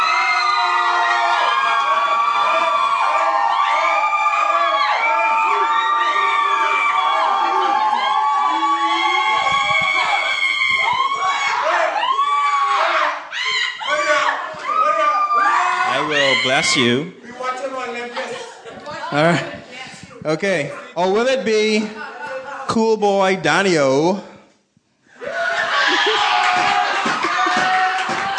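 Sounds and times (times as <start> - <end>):
crowd cheering and screaming: 0.0 - 16.9, 25.2 - 28.3
speech: 16.6 - 17.2, 19.1 - 19.6, 20.2 - 22.0, 22.7 - 24.3.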